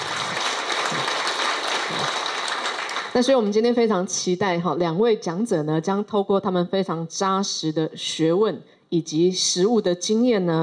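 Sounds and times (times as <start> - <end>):
audience applause: 0.0 - 3.2
speech: 3.2 - 10.6.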